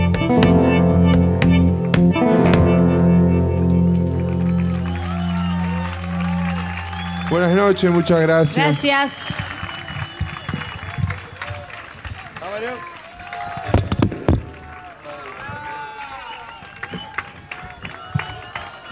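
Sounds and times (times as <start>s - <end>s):
crowd applauding: 0.0s - 18.9s
shrill whistles: 4.7s - 14.8s, 15.4s - 18.9s
speech: 7.7s - 9.4s, 12.6s - 12.9s.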